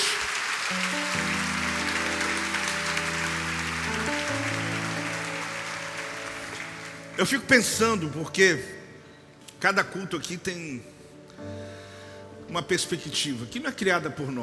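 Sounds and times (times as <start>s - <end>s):
audience applause: 0.0s - 7.8s
speech: 0.7s - 1.0s, 7.2s - 8.8s, 9.6s - 11.6s, 12.5s - 14.4s.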